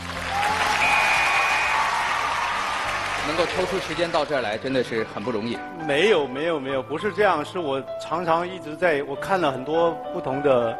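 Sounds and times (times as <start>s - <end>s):
audience applause: 0.0s - 4.6s
speech: 3.3s - 10.7s.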